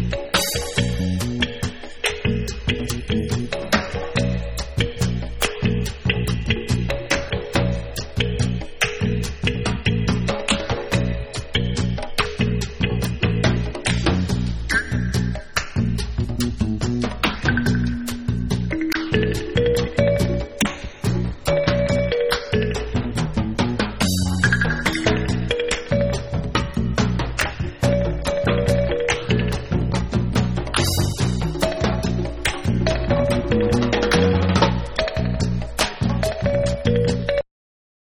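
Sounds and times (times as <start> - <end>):
drum song: 0.0 - 37.4.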